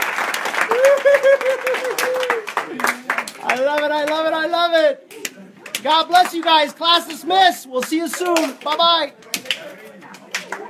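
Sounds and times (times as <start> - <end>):
speech: 0.8 - 5.1, 5.8 - 9.3
audience giving high fives: 7.8 - 10.5.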